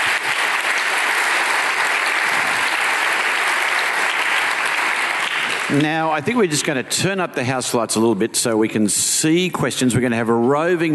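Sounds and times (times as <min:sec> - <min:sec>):
audience applause: 0:00.0 - 0:06.5
speech: 0:05.7 - 0:10.9.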